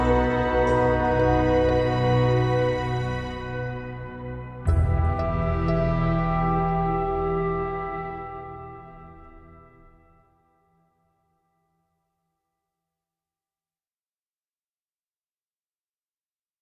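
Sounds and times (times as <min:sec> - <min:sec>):
momentary ambient sound: 0:00.0 - 0:10.2.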